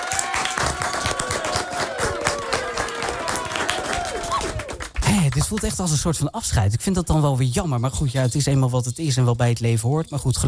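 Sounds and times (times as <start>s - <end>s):
audience applause: 0.0s - 5.7s
speech: 5.3s - 10.4s.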